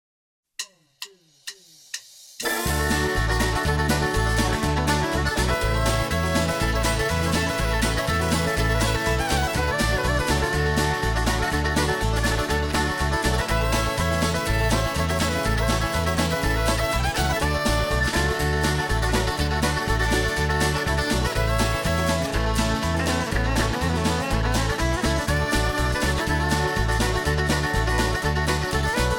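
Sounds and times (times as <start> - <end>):
hoedown square dance music: 2.4 - 29.1.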